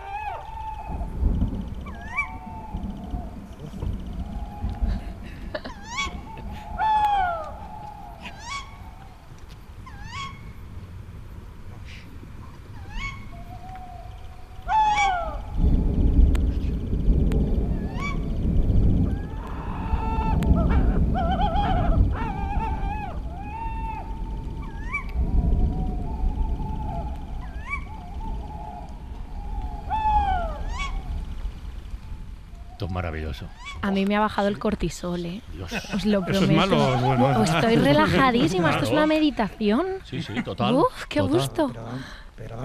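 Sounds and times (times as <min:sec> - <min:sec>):
young owls whistling calls: 0:00.0 - 0:05.2, 0:05.8 - 0:10.6, 0:12.8 - 0:16.8, 0:17.5 - 0:18.4, 0:19.0 - 0:31.4, 0:32.0 - 0:34.0
distant thunderstorm thunder rumble: 0:00.0 - 0:42.6
laughter: 0:04.9 - 0:06.7, 0:35.6 - 0:41.5
speech: 0:33.0 - 0:42.6.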